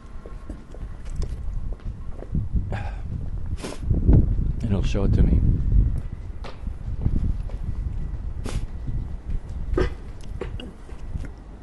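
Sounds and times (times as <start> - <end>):
footsteps of a coworker walking by: 0.0 - 2.5, 5.5 - 11.6
dull rumble: 0.0 - 11.6
speech: 4.8 - 5.8.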